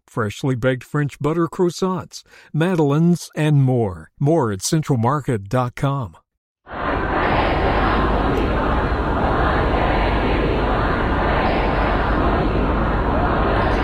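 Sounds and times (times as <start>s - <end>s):
speech: 0.2s - 6.2s
mourners in Mashhad: 6.7s - 13.8s.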